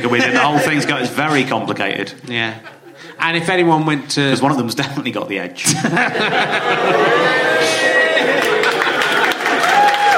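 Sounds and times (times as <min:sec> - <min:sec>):
laughter: 0:00.0 - 0:03.2, 0:05.6 - 0:10.1
speech: 0:00.0 - 0:08.0
audience applause: 0:06.7 - 0:10.1.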